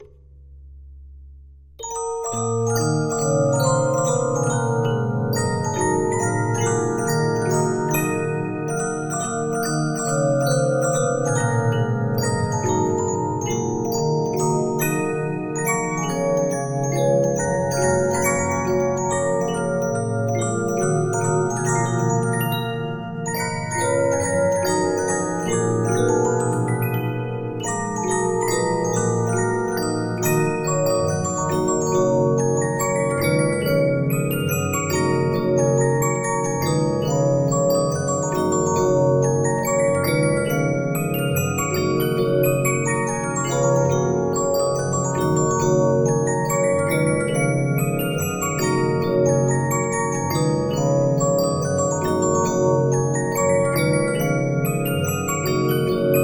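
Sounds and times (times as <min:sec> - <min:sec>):
Regina 15-inch disc music box: 0:01.8 - 0:56.2.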